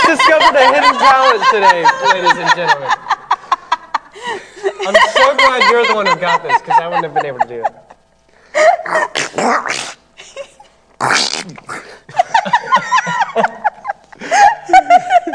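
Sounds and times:
laughter: 0.0 - 9.2, 11.8 - 15.3
speech: 0.5 - 3.2, 4.2 - 7.9, 8.5 - 10.0, 11.0 - 13.5
person imitating a cartoon duck's voice: 8.8 - 10.0, 11.0 - 11.9.

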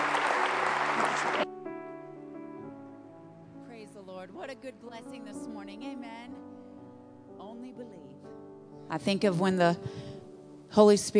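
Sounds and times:
audience clapping: 0.0 - 1.5
speech: 4.4 - 6.6, 7.4 - 11.1.

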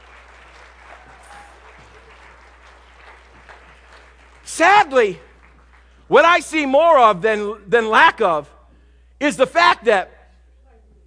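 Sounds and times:
audience clapping: 0.0 - 6.6
faint low hum: 0.0 - 11.0
speech: 4.6 - 5.3, 6.1 - 8.6, 9.2 - 10.2.

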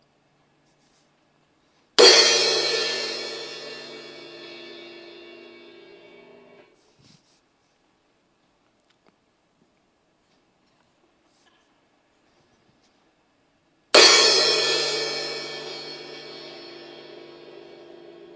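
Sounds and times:
clanging cymbal or resounding gong: 2.0 - 6.7, 14.0 - 18.3.

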